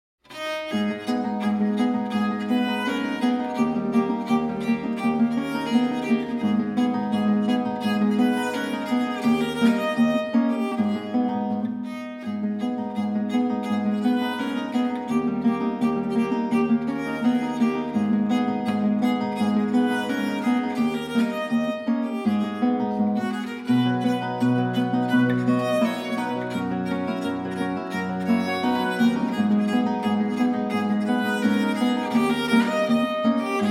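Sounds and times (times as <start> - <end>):
arpeggione moderato classical piece in A minor: 0.3 - 33.7.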